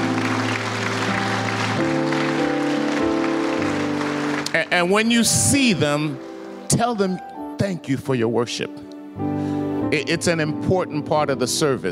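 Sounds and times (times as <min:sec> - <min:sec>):
audience clapping: 0:00.0 - 0:05.6
speech: 0:04.6 - 0:09.3, 0:09.9 - 0:11.9.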